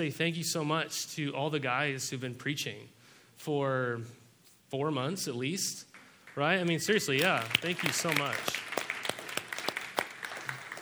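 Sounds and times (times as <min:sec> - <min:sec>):
speech: 0:00.0 - 0:08.7
audience applause: 0:06.3 - 0:10.8.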